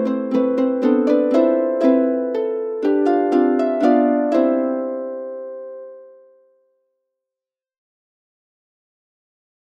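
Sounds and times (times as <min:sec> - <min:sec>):
harp playing a waltz: 0:00.0 - 0:06.6.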